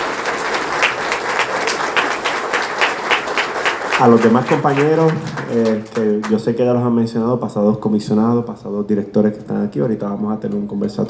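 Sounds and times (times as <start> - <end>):
crowd applauding: 0.0 - 6.5
speech: 4.0 - 11.0.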